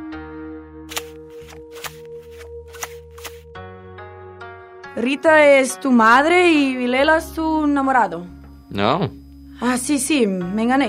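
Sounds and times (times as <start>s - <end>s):
fortune-telling cards being shuffled: 0.9s - 3.5s
speech: 5.0s - 10.8s.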